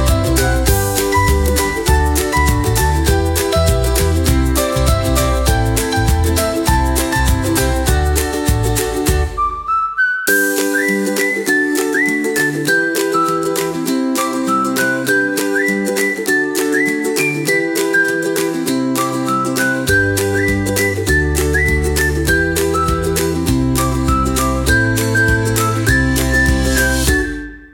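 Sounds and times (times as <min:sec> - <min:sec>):
carefree happy upbeat ukulele music: 0:00.0 - 0:27.7
whistling: 0:09.2 - 0:27.7.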